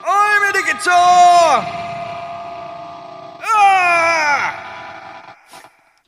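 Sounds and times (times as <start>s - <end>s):
guitar: 0.0s - 5.8s.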